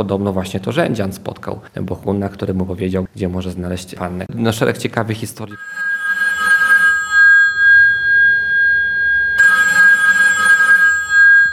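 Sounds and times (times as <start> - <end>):
speech: 0.0 - 6.0
public payphone bell ringing: 5.6 - 11.5.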